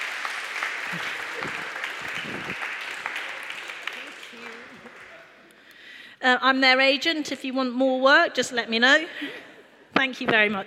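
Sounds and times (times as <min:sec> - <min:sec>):
audience applause: 0:00.0 - 0:05.5
speech: 0:00.9 - 0:01.2, 0:06.2 - 0:09.4, 0:10.0 - 0:10.6.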